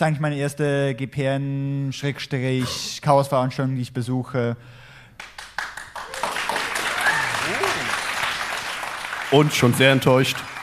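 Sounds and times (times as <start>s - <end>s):
speech: 0.0s - 4.8s, 9.3s - 10.5s
audience applause: 5.6s - 10.6s.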